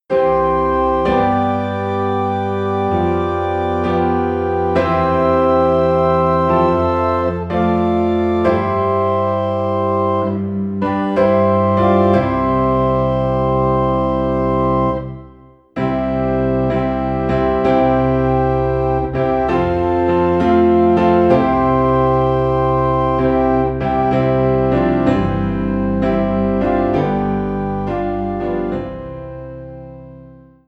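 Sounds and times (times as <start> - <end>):
piano in C: 0.0 - 30.6
organ in C: 0.1 - 30.5.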